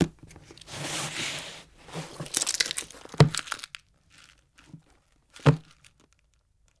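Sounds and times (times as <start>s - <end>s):
book opening: 0.5s - 3.4s.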